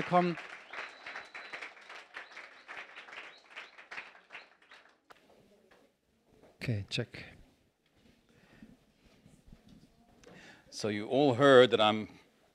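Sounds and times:
speech: 0.0s - 0.6s, 6.6s - 7.4s, 10.8s - 12.2s
welcoming applause: 0.0s - 5.3s.

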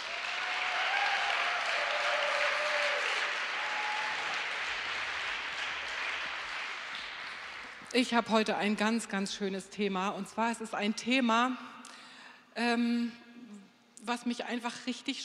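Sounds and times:
audience applause: 0.0s - 7.9s
speech: 7.9s - 12.0s, 12.6s - 13.2s, 14.0s - 15.2s.

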